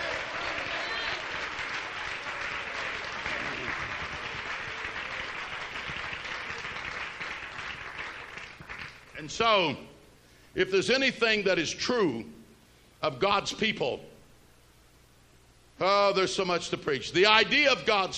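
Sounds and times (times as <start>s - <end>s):
audience clapping hands: 0.0s - 9.2s
speech: 9.2s - 9.9s, 10.6s - 12.4s, 13.0s - 14.1s, 15.8s - 18.1s.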